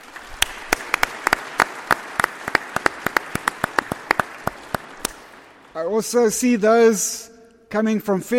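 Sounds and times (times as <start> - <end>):
audience applause: 0.0 - 5.7
speech: 5.8 - 8.3.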